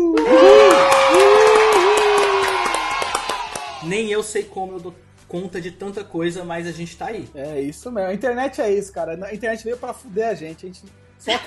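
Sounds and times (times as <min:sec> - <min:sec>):
applause from a crowd: 0:00.0 - 0:04.1
speech: 0:03.9 - 0:11.4.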